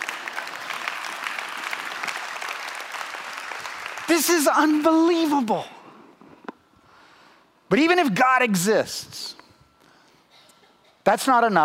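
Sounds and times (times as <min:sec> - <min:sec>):
audience applause: 0:00.0 - 0:05.0
speech: 0:04.1 - 0:05.7, 0:07.7 - 0:09.4, 0:11.1 - 0:11.6.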